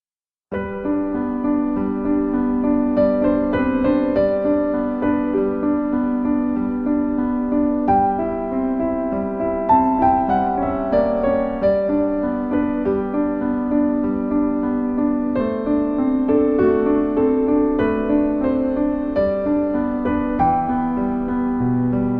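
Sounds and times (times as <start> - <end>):
classical music for birds: 0.5 - 22.1.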